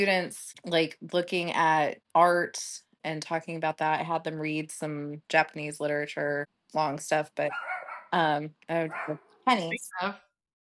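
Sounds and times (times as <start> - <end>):
speech: 0.0 - 10.2
neighbor's dog barking: 7.5 - 8.2, 8.9 - 9.2.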